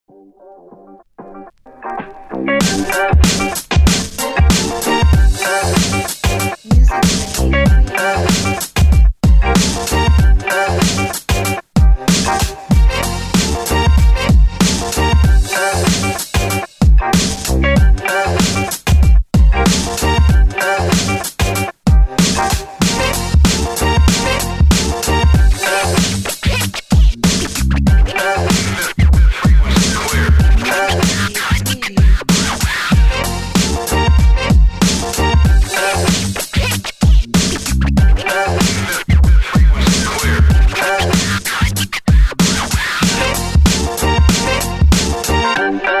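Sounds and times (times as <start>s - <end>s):
hip hop music: 1.3s - 45.9s.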